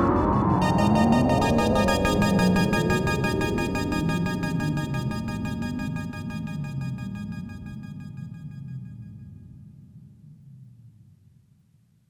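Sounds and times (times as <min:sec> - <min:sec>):
Oberheim OB-8 synthesizer quantized LFO pulse width modulation: 0:00.1 - 0:08.8.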